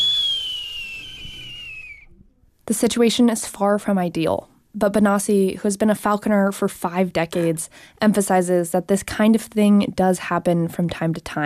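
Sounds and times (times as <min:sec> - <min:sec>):
captive falconry bird's warning call, long thin high whistle: 0:00.0 - 0:02.2
speech: 0:02.7 - 0:11.4.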